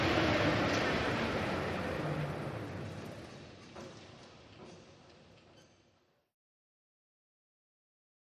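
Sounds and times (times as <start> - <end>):
crane motor lifting object: 0.0 - 5.2
machine whir: 0.0 - 5.6
crane clanks: 0.0 - 6.2.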